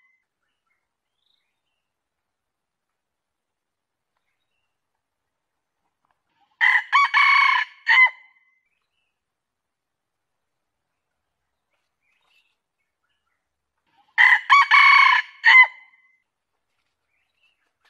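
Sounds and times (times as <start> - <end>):
junglefowl crowing: 6.6 - 8.2, 14.2 - 15.8.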